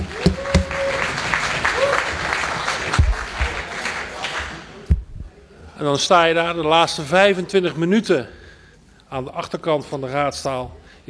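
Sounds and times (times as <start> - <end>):
audience applause: 0.0 - 4.8
speech: 5.8 - 8.4, 9.1 - 11.0.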